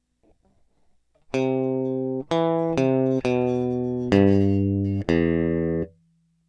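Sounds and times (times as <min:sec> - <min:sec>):
electric guitar: 0:01.3 - 0:05.9.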